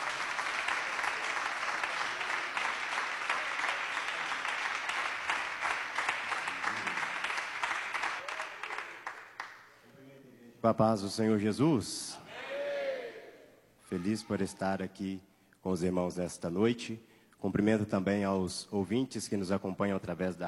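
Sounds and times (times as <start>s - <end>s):
audience applause: 0.0s - 9.6s
speech: 10.6s - 12.2s, 13.9s - 20.4s.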